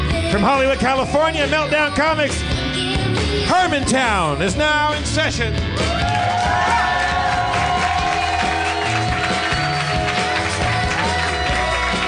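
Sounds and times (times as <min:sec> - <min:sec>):
speech: 0:00.3 - 0:07.0
audience applause: 0:05.9 - 0:12.0.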